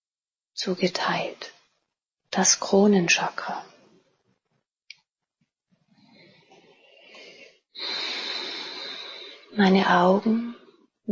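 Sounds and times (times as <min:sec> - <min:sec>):
speech: 0:00.6 - 0:01.5, 0:02.3 - 0:03.7, 0:09.6 - 0:11.0
slow deep breathing during a guided meditation: 0:06.0 - 0:09.6.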